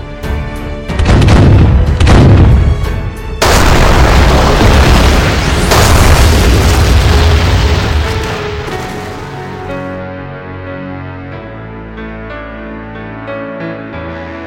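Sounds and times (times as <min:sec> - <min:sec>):
heavy artillery fire pounding German defences during an Allied landing in Italy: 0:00.9 - 0:09.1.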